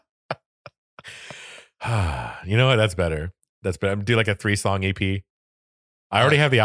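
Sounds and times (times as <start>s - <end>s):
speech: 1.9s - 5.3s, 6.1s - 6.6s
person imitating whale sounds: 6.2s - 6.6s.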